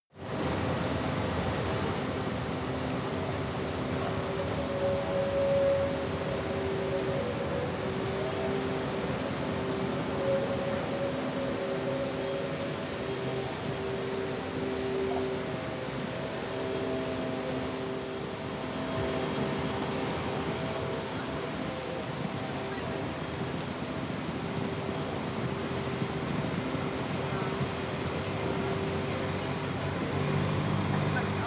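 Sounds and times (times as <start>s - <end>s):
rain: 0.2s - 31.4s
construction noise: 18.0s - 31.4s
traffic: 18.6s - 31.4s.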